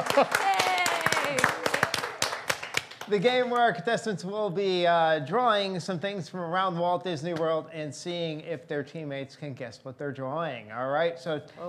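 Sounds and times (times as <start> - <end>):
speech: 0.0 - 0.7, 3.1 - 11.6
audience clapping: 0.0 - 3.8.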